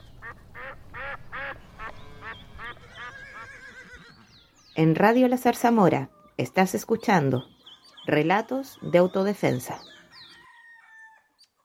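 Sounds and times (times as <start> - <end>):
female duck quacking: 0.2 - 3.5
speech: 4.8 - 10.0.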